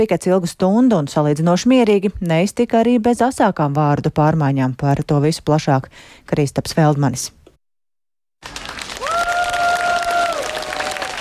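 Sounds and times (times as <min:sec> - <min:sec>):
speech: 0:00.0 - 0:07.4
applause from protest crowd: 0:08.4 - 0:11.1.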